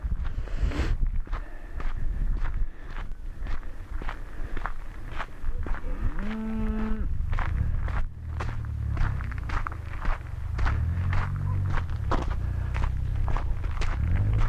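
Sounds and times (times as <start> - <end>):
crunching footsteps: 0.1 - 14.4
cattle mooing: 6.2 - 7.1.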